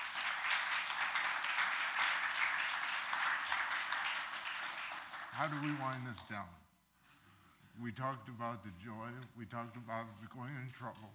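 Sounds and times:
audience clapping: 0.0 - 6.4
speech: 5.4 - 6.7, 7.8 - 11.1.

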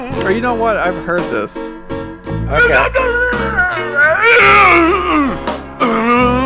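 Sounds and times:
speech: 0.1 - 1.9, 2.5 - 6.3
singer grunting and screaming in a song: 2.3 - 3.6.

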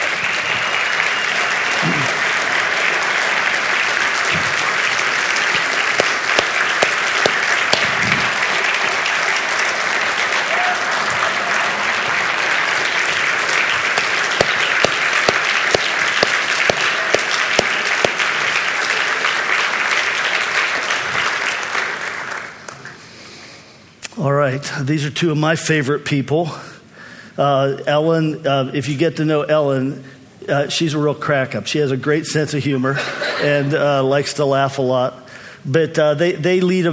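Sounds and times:
audience applause: 0.0 - 22.8
speech: 24.7 - 26.7, 27.4 - 36.9.

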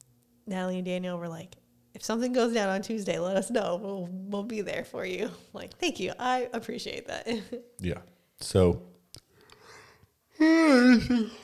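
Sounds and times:
speech: 0.5 - 8.9, 10.4 - 11.4
person yawning: 10.4 - 11.4.

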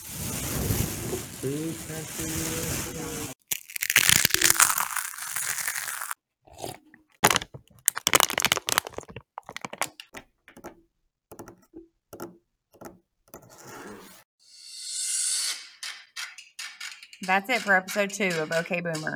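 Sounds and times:
crushing a bag of chips: 0.0 - 10.7
speech: 1.4 - 3.3, 17.3 - 19.1.

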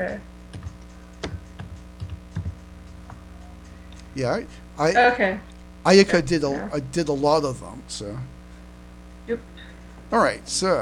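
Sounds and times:
speech: 0.0 - 0.3, 4.2 - 8.3, 9.3 - 10.8
low steady hum: 0.0 - 10.8
soft keystrokes on a computer keyboard: 0.5 - 3.2.

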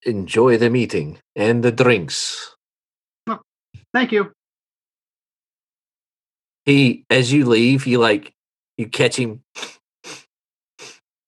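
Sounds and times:
speech: 0.0 - 2.6, 3.2 - 4.4, 6.6 - 10.2
person sniffing: 9.6 - 11.0.

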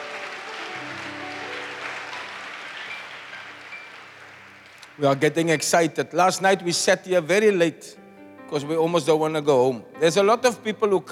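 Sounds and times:
audience applause: 0.0 - 5.6
speech: 5.0 - 11.1.

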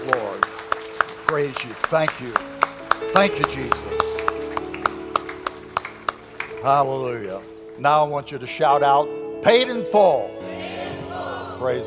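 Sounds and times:
audience clapping: 0.0 - 8.3
speech: 1.3 - 2.5, 3.1 - 4.0, 6.6 - 10.4, 11.6 - 11.8.

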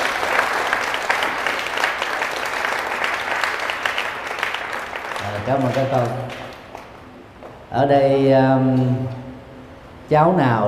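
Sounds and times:
audience applause: 0.0 - 6.9
speech: 5.5 - 6.4, 7.7 - 9.3, 10.1 - 10.6.

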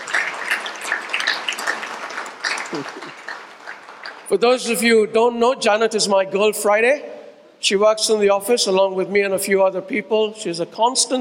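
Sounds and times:
audience applause: 0.0 - 4.3
speech: 2.7 - 3.3, 4.3 - 11.1.

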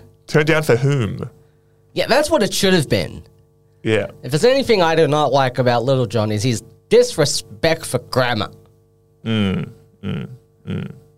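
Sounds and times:
speech: 0.3 - 1.4, 2.0 - 8.6, 9.2 - 11.0
burp: 9.2 - 11.1.

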